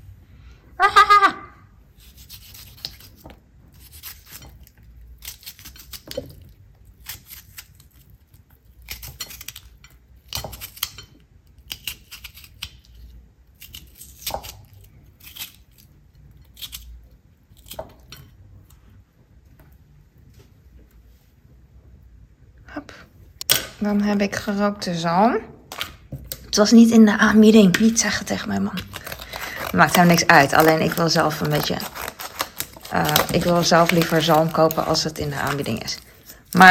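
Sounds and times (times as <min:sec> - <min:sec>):
knife slicing cucumber: 0:02.0 - 0:06.4, 0:07.0 - 0:08.0, 0:08.8 - 0:16.9, 0:27.7 - 0:36.6
speech: 0:23.8 - 0:25.5, 0:26.6 - 0:29.0, 0:29.8 - 0:32.0, 0:33.0 - 0:36.6.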